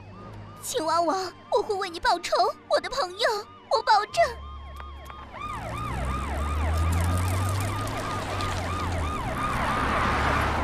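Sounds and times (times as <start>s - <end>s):
police car siren: 0.0s - 10.6s
speech: 0.6s - 4.4s.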